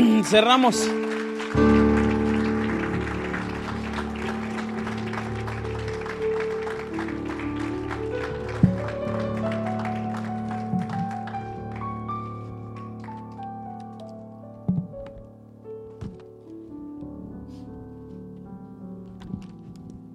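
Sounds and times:
audience applause: 0.0 - 13.4
sustained keyboard or organ chords: 0.0 - 20.1
speech: 0.2 - 1.8.

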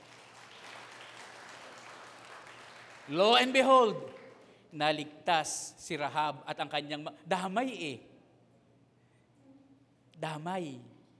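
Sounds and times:
church congregation applauding during a sermon: 0.0 - 4.7
speech: 3.1 - 4.1, 4.7 - 8.1, 10.2 - 10.9.

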